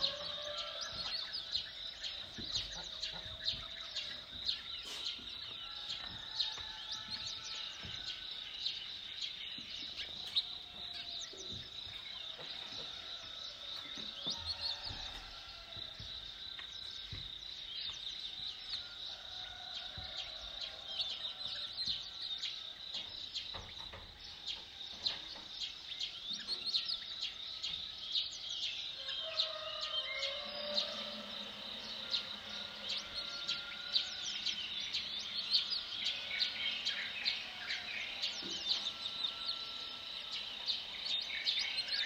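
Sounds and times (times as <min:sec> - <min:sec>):
birds chirping and singing: 0:00.0 - 0:42.0
constant high insect buzz: 0:00.0 - 0:42.0.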